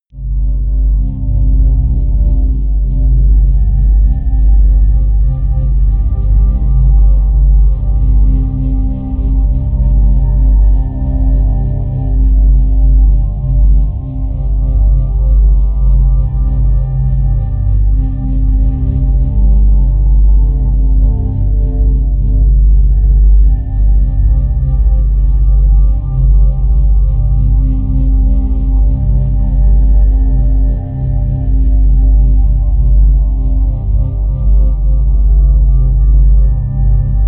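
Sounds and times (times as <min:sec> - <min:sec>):
solitary drone: 0:00.1 - 0:37.2.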